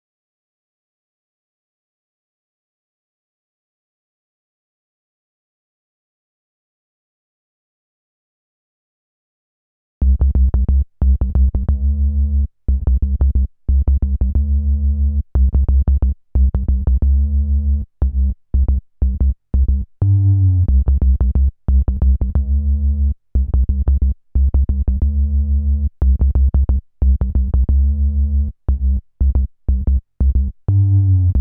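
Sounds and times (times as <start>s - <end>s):
bass: 10.0s - 31.3s.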